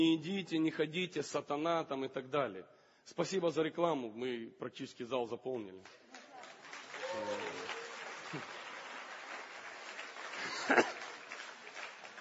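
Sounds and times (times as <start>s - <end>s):
speech: 0.0s - 6.1s, 7.2s - 7.6s, 8.3s - 8.5s, 10.7s - 10.9s
audience applause: 6.2s - 12.1s.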